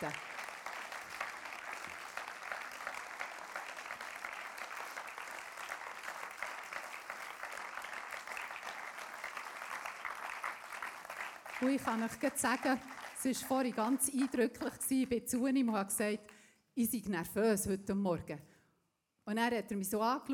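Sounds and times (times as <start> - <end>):
speech: 0.0 - 0.3, 11.6 - 18.5, 19.3 - 20.3
warm audience applause: 0.0 - 14.8.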